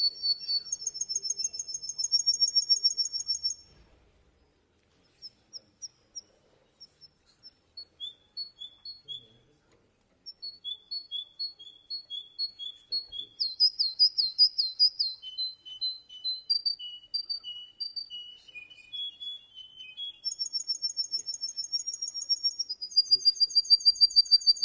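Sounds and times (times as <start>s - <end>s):
canary singing: 0.0s - 3.7s, 5.1s - 9.4s, 10.2s - 24.6s.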